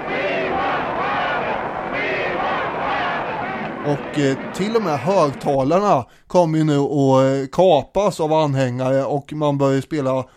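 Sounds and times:
large crowd cheering and chanting at a rally: 0:00.0 - 0:05.9
speech: 0:03.9 - 0:10.3.

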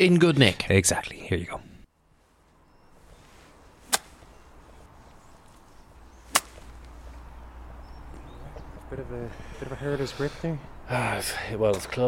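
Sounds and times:
speech: 0:00.0 - 0:01.6, 0:08.9 - 0:12.0
golf club chipping balls in a back garden: 0:03.8 - 0:04.5, 0:06.1 - 0:06.9.

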